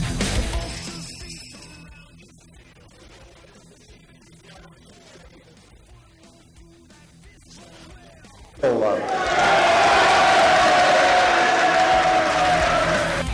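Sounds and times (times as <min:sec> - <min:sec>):
cheering in the Senate chamber: 0:08.6 - 0:13.3.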